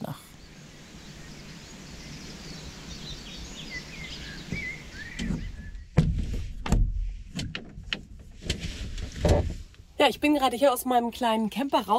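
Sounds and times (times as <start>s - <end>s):
faint high bird chirps and warbles: 0.3s - 6.0s
sharp clicks and dull thumps: 4.5s - 10.4s
speech: 10.0s - 11.9s.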